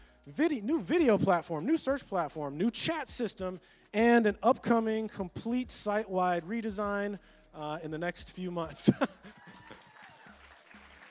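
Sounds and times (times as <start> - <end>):
speech: 0.2 - 9.4
laughter: 8.8 - 10.8
audience applause: 9.4 - 11.0.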